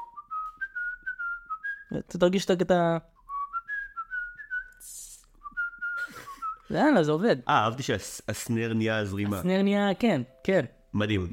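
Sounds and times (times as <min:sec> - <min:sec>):
person whistling a short tune: 0:00.0 - 0:01.9, 0:03.2 - 0:06.7
speech: 0:01.9 - 0:03.1, 0:06.7 - 0:11.3.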